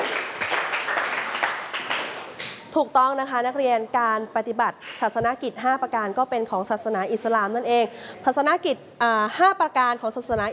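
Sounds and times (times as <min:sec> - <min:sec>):
students clapping for a classmate: 0:00.0 - 0:02.6
speech: 0:02.8 - 0:10.5.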